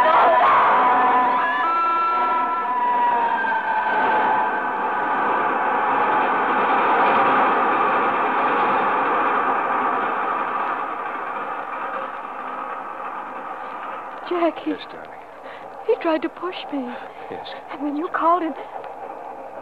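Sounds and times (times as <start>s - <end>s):
train rolling on tracks: 0.0s - 19.5s
thin metallic squeal: 0.1s - 6.9s
speech: 14.6s - 15.2s, 16.0s - 18.8s.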